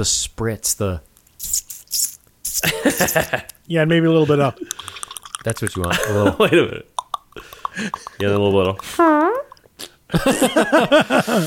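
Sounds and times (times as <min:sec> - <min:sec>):
speech: 0:00.0 - 0:01.6, 0:02.6 - 0:04.8, 0:05.4 - 0:09.4, 0:10.1 - 0:11.4
laughter: 0:02.6 - 0:03.5, 0:05.7 - 0:06.8, 0:10.1 - 0:11.4
short rising fart: 0:08.9 - 0:09.6.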